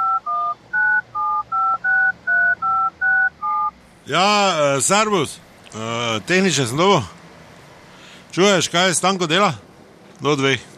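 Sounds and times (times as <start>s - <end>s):
telephone number being dialed with two-tone beeps: 0.0s - 3.7s
speech: 4.1s - 7.2s, 8.4s - 10.7s.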